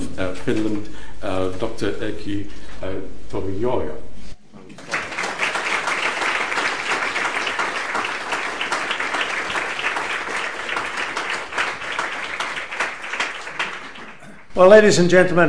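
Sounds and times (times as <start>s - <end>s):
speech: 0.2s - 4.1s, 14.6s - 15.4s
audience applause welcoming the Foreign Minister of Finland: 4.7s - 14.4s.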